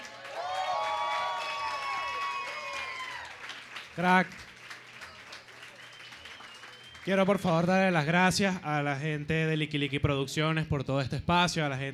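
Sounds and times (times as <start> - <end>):
crowd cheering and whooping: 0.0 - 3.6
crowd applauding: 0.0 - 8.0
speech: 4.0 - 4.5, 7.1 - 11.9.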